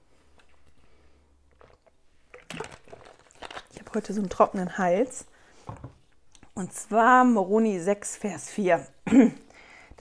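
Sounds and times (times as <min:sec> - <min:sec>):
gulp of a drink: 0:01.5 - 0:03.8
wet mouth and swallowing sounds of sipping a drink: 0:01.5 - 0:04.7
speech: 0:03.9 - 0:05.3, 0:06.6 - 0:09.4.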